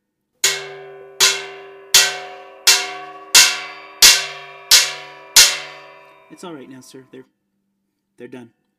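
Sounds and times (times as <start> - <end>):
sledgehammer hammering metal door bolts: 0.4 - 6.6
speech: 6.3 - 7.4, 8.2 - 8.6.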